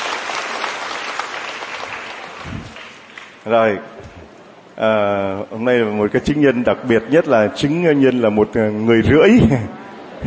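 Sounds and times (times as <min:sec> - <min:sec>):
audience applause: 0:00.0 - 0:03.4
speech: 0:03.4 - 0:04.0, 0:04.8 - 0:10.2.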